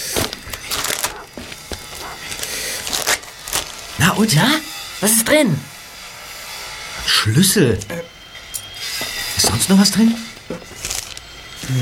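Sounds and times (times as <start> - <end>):
envelope being torn open: 0.0 - 4.0, 10.5 - 11.3
speech: 4.2 - 5.7, 7.2 - 8.2, 9.4 - 10.8.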